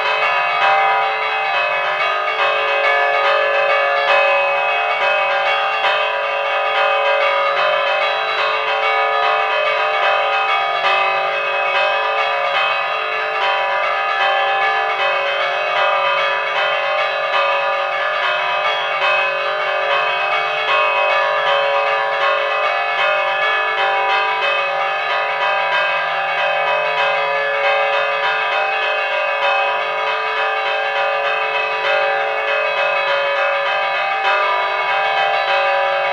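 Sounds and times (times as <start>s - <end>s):
festive peal of church bells: 0.0s - 36.1s.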